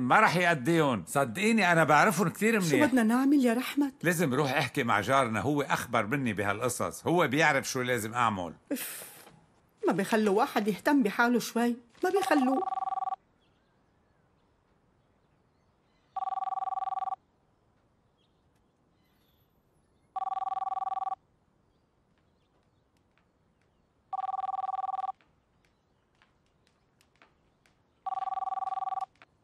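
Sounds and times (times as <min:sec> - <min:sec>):
speech: 0:00.0 - 0:09.1, 0:09.8 - 0:12.9
telephone ringing in a house: 0:12.0 - 0:13.2, 0:16.2 - 0:17.2, 0:20.2 - 0:21.2, 0:24.1 - 0:25.2, 0:28.0 - 0:29.2
faint clicks: 0:22.1 - 0:24.0, 0:25.1 - 0:29.4.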